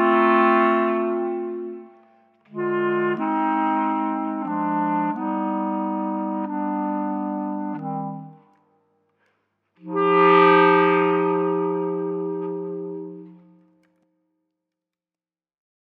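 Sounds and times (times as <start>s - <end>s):
clarinet trio playing a chaconne: 0.0s - 8.6s, 9.8s - 13.8s.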